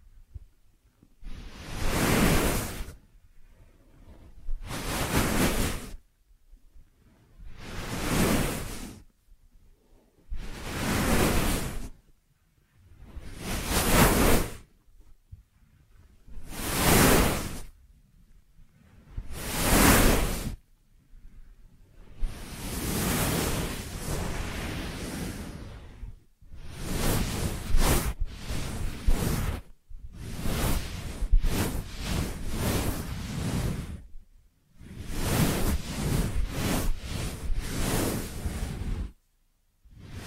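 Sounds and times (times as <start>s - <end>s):
rhythmic rubbing and swishing for an ear massage: 0.0s - 40.2s.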